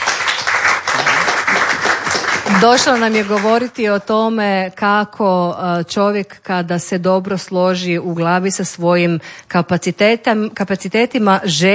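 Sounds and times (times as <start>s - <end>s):
talk show audience applause: 0.0s - 3.7s
speech: 2.5s - 11.7s.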